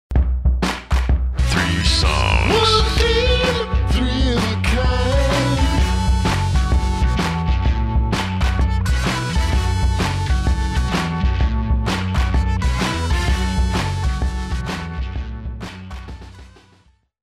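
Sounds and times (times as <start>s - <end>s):
rock and roll music intro: 0.1s - 17.0s.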